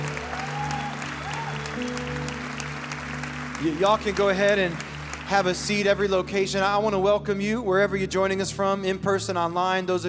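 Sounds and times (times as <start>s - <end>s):
church congregation applause during a service: 0.0s - 6.8s
speech: 3.6s - 10.0s.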